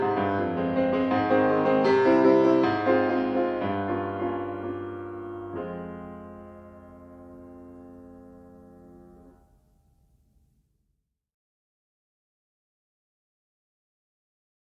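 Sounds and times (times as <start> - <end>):
piano piece: 0.0 - 10.6.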